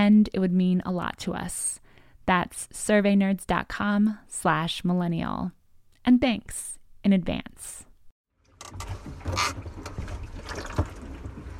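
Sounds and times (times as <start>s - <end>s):
speech: 0.0s - 7.8s, 8.7s - 10.8s
water lapping around a kayak: 8.7s - 11.5s.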